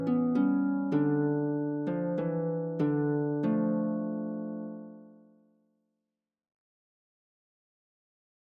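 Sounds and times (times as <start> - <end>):
harp playing a carol: 0.0 - 5.4.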